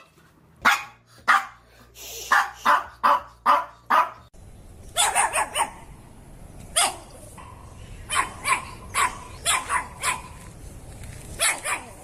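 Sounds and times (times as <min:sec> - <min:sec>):
happy dog barking: 0:00.0 - 0:01.6, 0:02.3 - 0:04.3, 0:05.0 - 0:05.8, 0:06.8 - 0:07.1, 0:08.1 - 0:10.4, 0:11.4 - 0:12.0.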